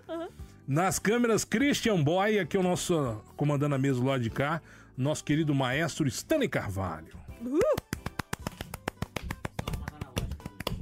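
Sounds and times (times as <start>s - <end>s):
speech: 0.1s - 7.8s
hand clapping: 7.4s - 10.8s.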